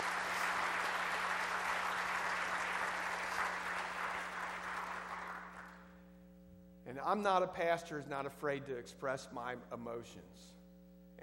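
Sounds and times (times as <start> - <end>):
audience applause: 0.0 - 5.8
speech: 7.0 - 10.6.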